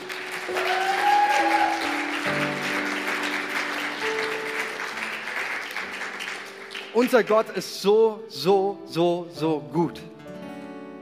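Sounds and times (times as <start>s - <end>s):
audience applause: 0.0s - 7.6s
speech: 7.0s - 10.2s.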